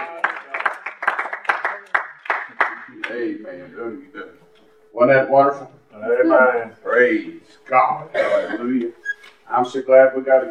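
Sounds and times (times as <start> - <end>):
audience hand clapping: 0.0 - 3.6
speech: 3.1 - 10.4.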